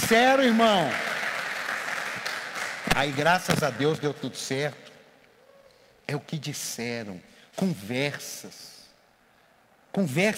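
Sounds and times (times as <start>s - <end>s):
audience applauding: 0.0s - 4.1s
speech: 0.1s - 1.1s, 3.0s - 4.8s, 6.1s - 8.7s, 10.0s - 10.3s.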